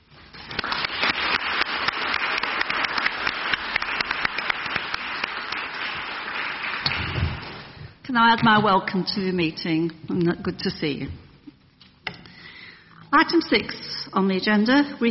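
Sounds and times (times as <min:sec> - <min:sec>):
applause at a council meeting welcoming new councillors: 0:00.4 - 0:07.6
speech: 0:08.2 - 0:11.2, 0:13.1 - 0:15.1.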